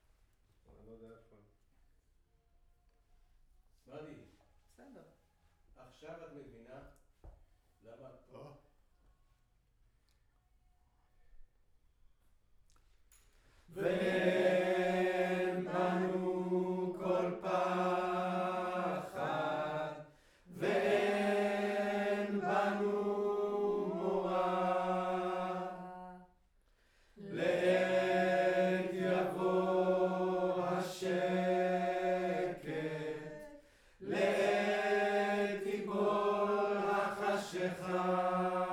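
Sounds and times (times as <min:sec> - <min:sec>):
choir singing in room: 0:13.7 - 0:26.4, 0:27.2 - 0:38.7.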